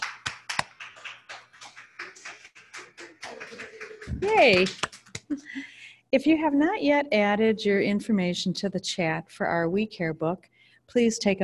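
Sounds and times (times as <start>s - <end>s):
scattered applause from a small group: 0.0s - 5.4s
speech: 4.2s - 11.4s.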